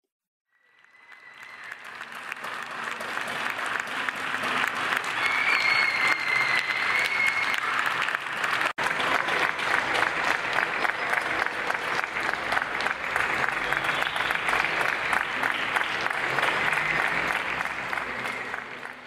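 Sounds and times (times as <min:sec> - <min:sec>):
large audience applause: 0:00.5 - 0:19.0
whistle: 0:05.2 - 0:07.7, 0:13.8 - 0:14.6.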